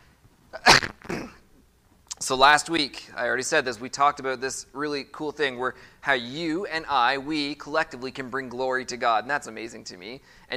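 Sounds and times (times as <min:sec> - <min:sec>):
coughing: 0:00.5 - 0:01.6
speech: 0:02.2 - 0:10.5.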